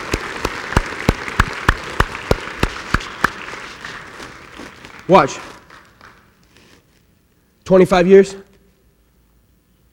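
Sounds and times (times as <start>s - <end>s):
audience applauding: 0.0s - 6.4s
speech: 5.1s - 5.5s, 7.7s - 8.4s.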